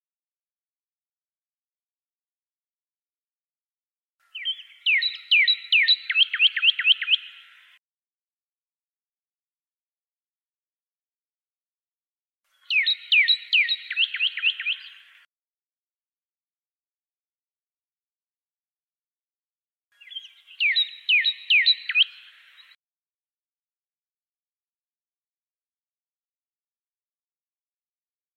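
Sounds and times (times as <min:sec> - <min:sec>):
pyrrhuloxia whistling down-slurred phrases: 0:04.3 - 0:07.4, 0:12.7 - 0:15.0, 0:20.0 - 0:22.4.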